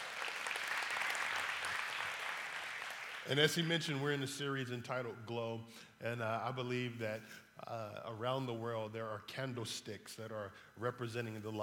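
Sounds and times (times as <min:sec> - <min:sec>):
audience applause: 0:00.0 - 0:03.4
speech: 0:03.2 - 0:11.6.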